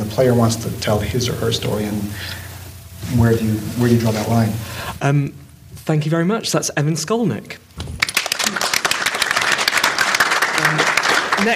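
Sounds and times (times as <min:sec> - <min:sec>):
speech: 0:00.2 - 0:02.4, 0:03.1 - 0:07.9
audience applause: 0:07.9 - 0:11.5.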